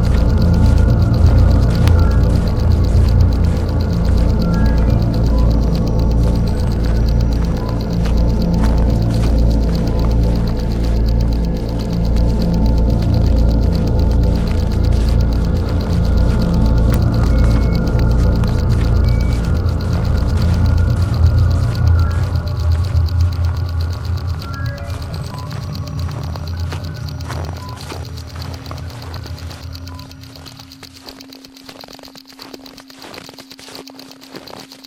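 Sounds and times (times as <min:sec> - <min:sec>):
water dripping: 0:00.0 - 0:34.8.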